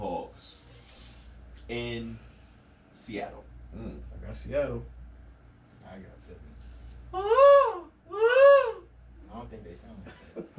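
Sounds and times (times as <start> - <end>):
speech: 1.7 - 2.3, 3.0 - 5.0, 5.9 - 7.8, 9.4 - 10.5
voice imitating a seahawk's call: 7.2 - 8.8.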